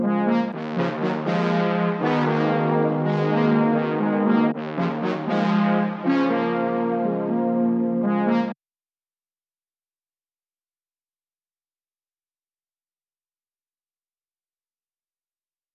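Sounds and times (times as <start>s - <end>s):
brass in F minor: 0.0s - 8.6s.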